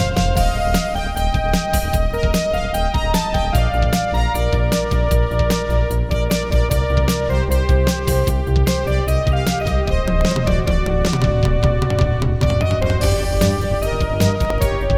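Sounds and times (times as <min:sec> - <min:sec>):
soundcard test intro music: 0:00.0 - 0:14.9.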